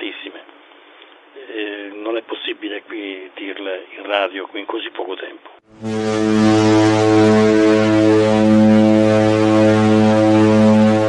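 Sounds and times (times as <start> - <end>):
speech: 2.1 - 6.3
ship's siren arriving in port: 5.7 - 11.0.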